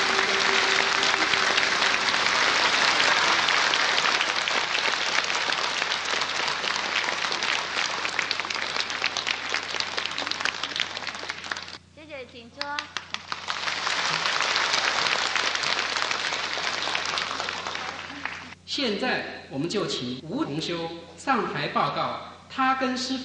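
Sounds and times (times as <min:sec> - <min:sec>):
warm audience applause: 0:00.0 - 0:11.8, 0:12.7 - 0:18.6
speech: 0:18.8 - 0:23.2.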